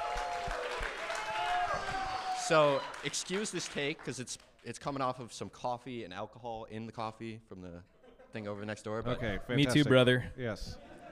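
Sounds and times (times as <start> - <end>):
crowd clapping and cheering: 0.0 - 5.0
speech: 2.5 - 10.9.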